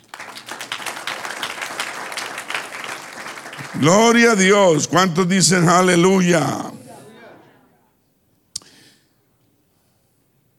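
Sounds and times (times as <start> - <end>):
crowd applauding: 0.0 - 5.5
speech: 3.8 - 6.8.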